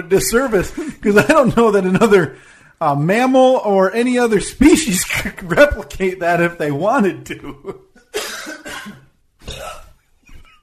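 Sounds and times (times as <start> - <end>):
speech: 0.0 - 7.9
burp sound effect from a soundboard: 8.2 - 10.0.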